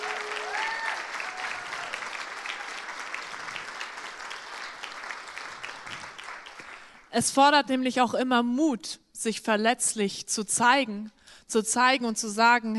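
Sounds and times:
audience applause: 0.0s - 7.1s
speech: 7.1s - 12.7s.

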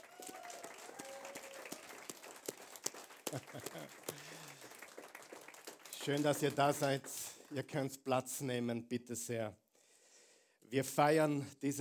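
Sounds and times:
audience applause: 0.0s - 7.6s
laughter: 3.2s - 4.7s
speech: 3.3s - 4.7s, 6.0s - 9.6s, 10.7s - 11.7s.

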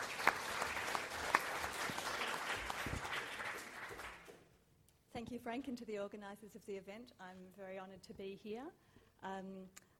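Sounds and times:
audience applause welcoming a speaker: 0.0s - 4.3s
speech: 5.3s - 9.9s.

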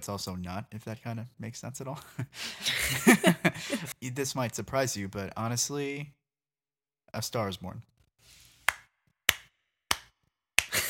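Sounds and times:
speech: 0.0s - 6.2s, 7.1s - 7.9s
laughter: 2.1s - 4.0s
hand claps: 8.6s - 10.8s.

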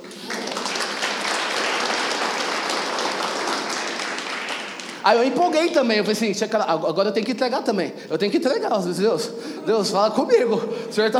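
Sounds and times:
audience applauding: 0.0s - 5.9s
speech: 5.0s - 11.1s.

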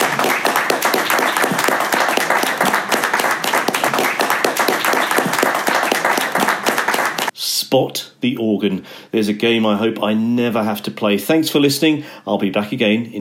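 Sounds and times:
applause: 0.0s - 7.3s
speech: 7.7s - 13.1s.

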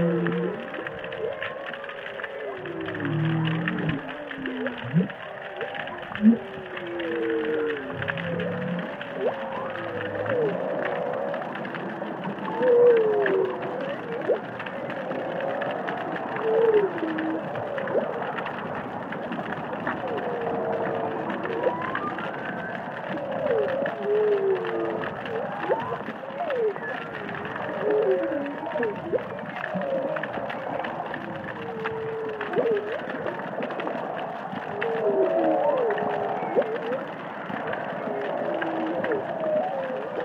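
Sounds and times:
constant underwater hiss: 0.0s - 40.2s
faint crackling clicks: 0.0s - 40.2s
humpback whales singing and calling underwater in the Indian Ocean: 0.0s - 40.2s.

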